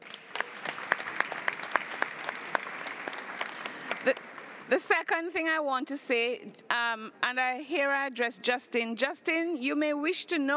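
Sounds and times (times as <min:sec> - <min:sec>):
audience clapping: 0:00.0 - 0:04.8
speech: 0:04.0 - 0:10.5.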